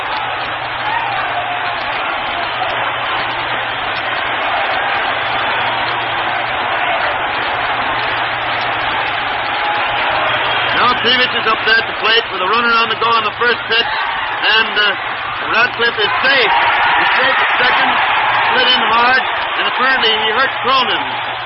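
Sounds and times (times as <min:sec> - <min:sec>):
ballpark crowd yelling: 0:00.0 - 0:21.4
speech: 0:11.1 - 0:21.4.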